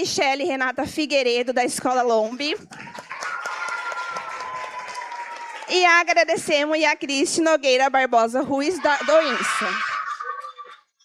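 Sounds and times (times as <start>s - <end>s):
speech: 0.0s - 3.2s, 5.7s - 9.9s
audience applauding a teacher at a school event: 2.6s - 6.6s
laughter: 8.4s - 10.8s.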